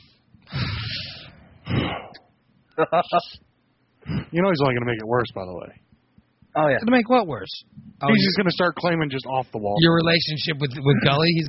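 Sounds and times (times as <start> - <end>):
deep breath in and out: 0.0 - 2.2
speech: 2.8 - 5.8, 6.6 - 11.4.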